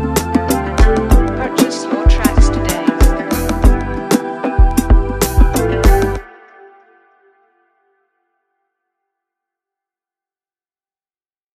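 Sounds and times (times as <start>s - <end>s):
dark beat: 0.0s - 6.3s.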